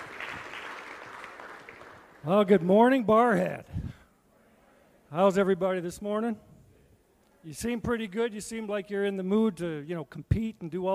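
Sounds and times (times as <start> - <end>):
audience clapping for a speaker: 0.0 - 3.0
speech: 2.2 - 3.8, 5.1 - 6.5, 7.4 - 10.9.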